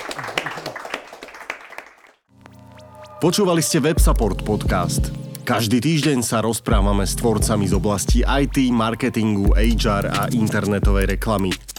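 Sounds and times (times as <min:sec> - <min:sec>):
audience applause: 0:00.0 - 0:02.2
speech: 0:03.2 - 0:11.7.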